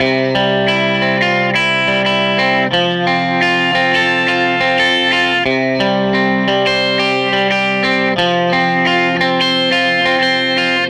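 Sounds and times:
Telecaster electric guitar loop: 0:00.0 - 0:10.8.

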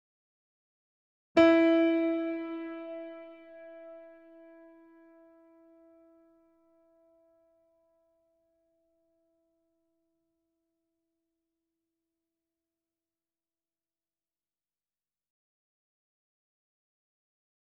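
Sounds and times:
grand piano notes: 0:01.4 - 0:05.3.

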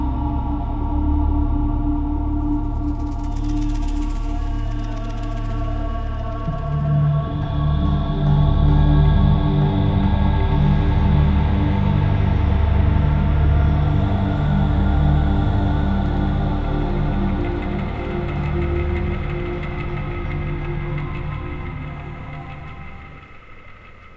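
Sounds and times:
percussion soundscape: 0:00.1 - 0:24.1.

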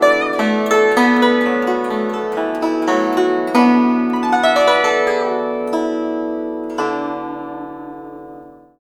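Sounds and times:
guzheng: 0:00.0 - 0:08.8.

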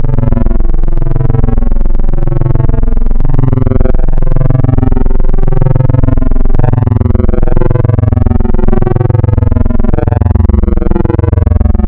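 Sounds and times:
spectral wavetable synth: 0:00.0 - 0:11.8.

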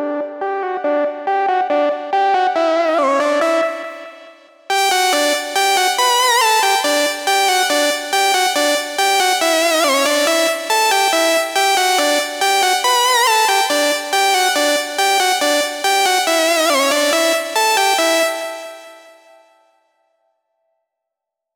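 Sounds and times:
synth intro melody in E at 140 BPM: 0:00.2 - 0:19.5.

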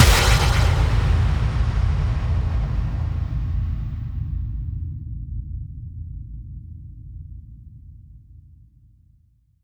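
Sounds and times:
effect kick drum hits: 0:00.0 - 0:04.4.

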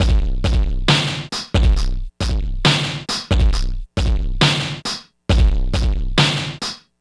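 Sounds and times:
FX kit beats: 0:00.0 - 0:06.8.

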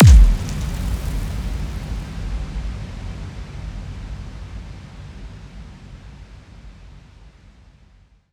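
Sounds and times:
hive impact effect: 0:00.0 - 0:04.3.

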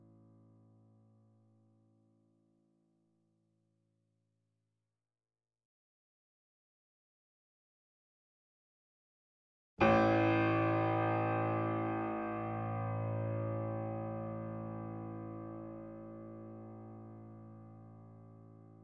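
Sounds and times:
grand piano notes C1 E1 A1 with effects: 0:09.8 - 0:18.8.

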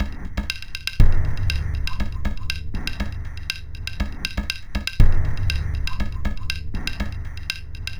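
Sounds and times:
minimalist processed percussion: 0:00.0 - 0:07.9.

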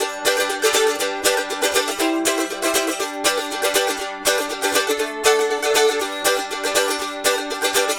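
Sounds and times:
mandolin rhythm: 0:00.0 - 0:07.9.

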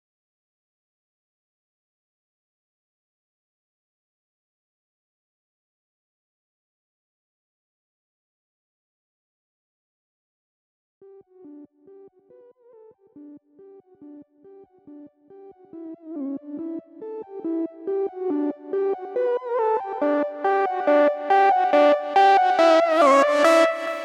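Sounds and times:
140 BPM sidechained intro melody: 0:17.5 - 0:24.0.

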